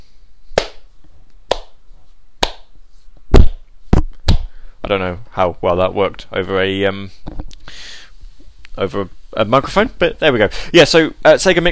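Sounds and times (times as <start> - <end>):
golf clap: 0.6 - 0.8, 1.5 - 1.8, 2.4 - 2.7
speech: 4.9 - 7.2, 8.8 - 11.7.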